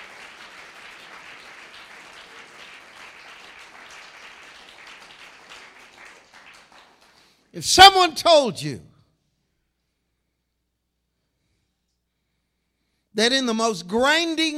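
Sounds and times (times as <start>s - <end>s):
audience clapping hands: 0.0s - 8.1s
speech: 7.6s - 8.9s, 13.2s - 14.5s.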